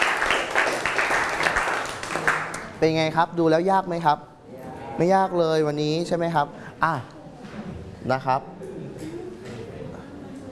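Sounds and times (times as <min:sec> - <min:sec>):
classroom students clapping for themselves: 0:00.0 - 0:02.8
speech: 0:02.8 - 0:04.3, 0:05.0 - 0:07.1, 0:08.0 - 0:08.6.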